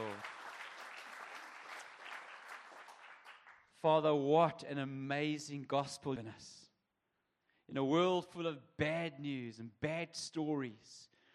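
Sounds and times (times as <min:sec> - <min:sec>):
church congregation clapping during a morning service: 0:00.0 - 0:03.8
speech: 0:03.8 - 0:06.7, 0:07.7 - 0:11.2.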